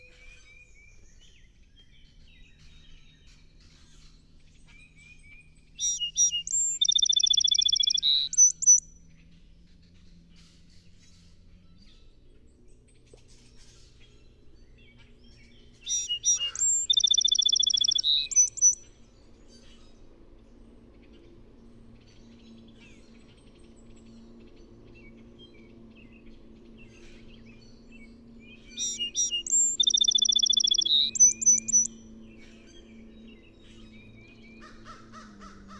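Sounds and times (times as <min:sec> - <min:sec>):
song sparrow song: 0:00.0 - 0:12.6, 0:13.3 - 0:35.7.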